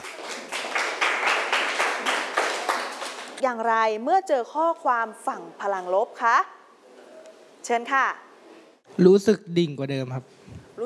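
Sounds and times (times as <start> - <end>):
classroom group applauding a classmate: 0.0 - 3.4
speech: 3.4 - 6.6, 7.7 - 8.2, 9.0 - 10.6.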